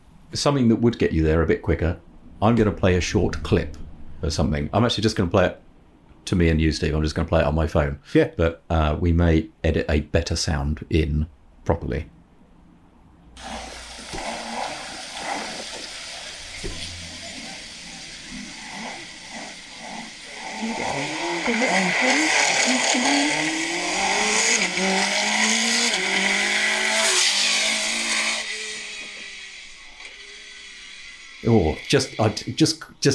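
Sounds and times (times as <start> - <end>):
speech: 0.3 - 5.6, 6.2 - 12.2, 13.4 - 13.6, 31.4 - 33.1
Ariel Atom V8 sports car roaring past: 14.2 - 29.1.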